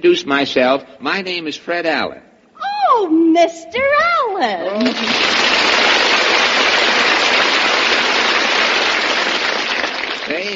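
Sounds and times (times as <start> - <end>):
speech: 0.0 - 2.3, 2.9 - 5.8
applause: 4.8 - 10.5.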